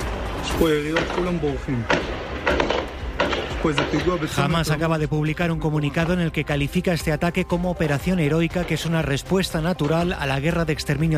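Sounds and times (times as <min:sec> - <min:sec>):
speech: 0:00.5 - 0:02.7, 0:03.6 - 0:11.1
gunshots: 0:00.5 - 0:04.6.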